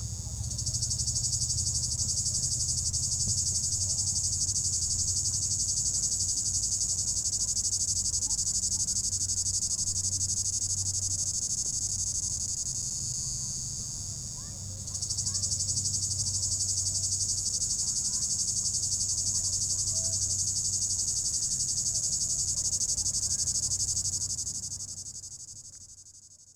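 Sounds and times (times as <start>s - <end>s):
cicada droning in an apple tree on a hilltop in 32 degree heat: 0.0s - 26.5s.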